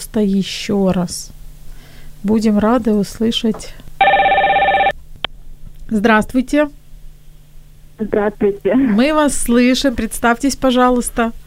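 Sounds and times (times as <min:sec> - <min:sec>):
speech: 0:00.1 - 0:01.4, 0:02.2 - 0:03.8, 0:05.9 - 0:06.8, 0:08.0 - 0:11.4
telephone ringing with incoming call: 0:04.0 - 0:05.0.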